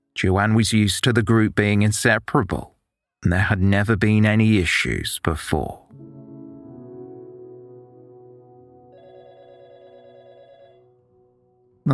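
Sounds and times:
speech: 0:00.2 - 0:06.1
telephone ringing with buzzing electronic tone: 0:08.9 - 0:11.1.

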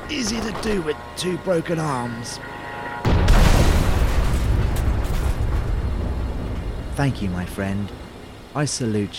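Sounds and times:
speech: 0:00.1 - 0:02.6, 0:07.0 - 0:09.1
self-destruct explosion: 0:03.1 - 0:06.4.

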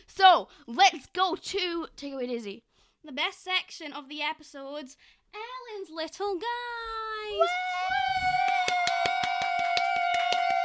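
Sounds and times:
speech: 0:00.1 - 0:08.4
two people clapping: 0:07.5 - 0:10.6.

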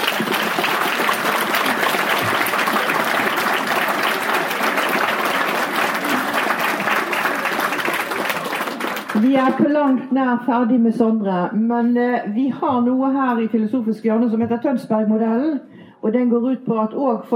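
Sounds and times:
audience applause: 0:00.0 - 0:09.6
speech: 0:09.2 - 0:17.3.

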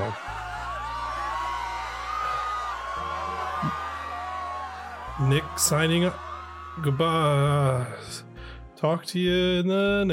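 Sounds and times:
sustained screaming from several voices: 0:00.0 - 0:08.0
speech: 0:05.2 - 0:06.2, 0:06.8 - 0:10.1.

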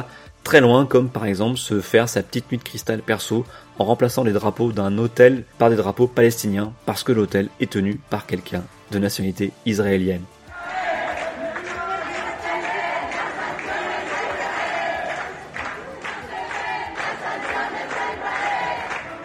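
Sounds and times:
speech: 0:00.0 - 0:10.4
crowd applauding outside a hotel: 0:10.6 - 0:19.2.

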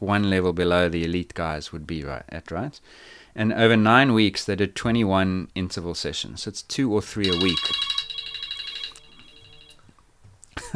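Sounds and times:
speech: 0:00.0 - 0:08.0
mobile phone ringing: 0:07.2 - 0:09.9.

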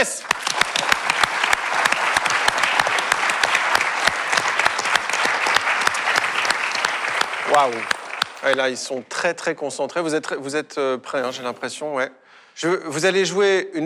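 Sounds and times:
speech: 0:00.0 - 0:00.4, 0:07.6 - 0:13.8
audience applause: 0:00.0 - 0:08.8.

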